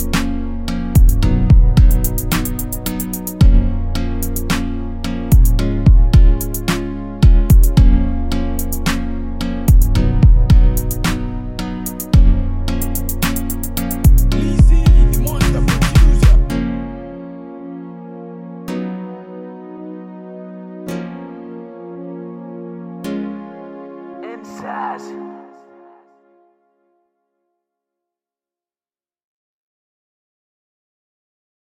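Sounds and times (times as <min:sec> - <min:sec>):
free trap hip hop beat: 0:00.0 - 0:17.0.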